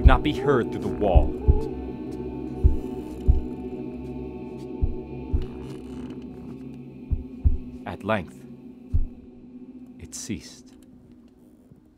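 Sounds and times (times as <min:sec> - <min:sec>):
muffled heartbeat sound effect: 0:00.0 - 0:00.3, 0:01.2 - 0:01.8, 0:02.6 - 0:03.6, 0:04.8 - 0:05.6, 0:07.1 - 0:07.8, 0:08.9 - 0:09.3
low hum: 0:00.0 - 0:11.9
speech: 0:00.1 - 0:01.4, 0:08.0 - 0:08.4, 0:10.1 - 0:10.7.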